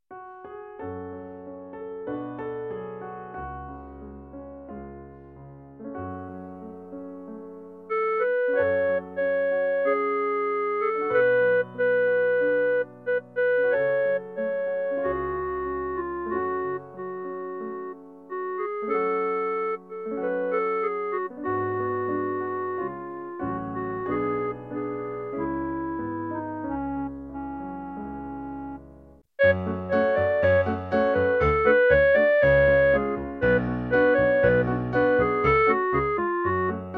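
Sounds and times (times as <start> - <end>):
clarinet: 7.8 - 36.9.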